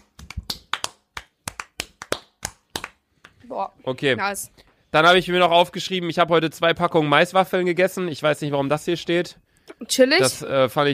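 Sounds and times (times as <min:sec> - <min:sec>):
hands clapping: 0:00.0 - 0:03.4
speech: 0:03.5 - 0:10.9.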